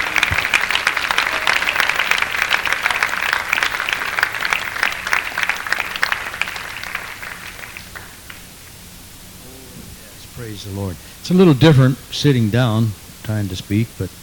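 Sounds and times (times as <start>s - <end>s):
crowd audience hand clapping: 0.0s - 8.7s
speech: 10.6s - 14.2s.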